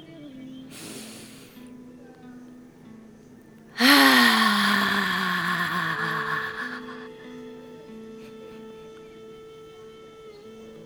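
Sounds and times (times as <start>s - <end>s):
deep breath exhaled forcefully through the mouth: 0.7s - 1.6s, 3.8s - 7.2s.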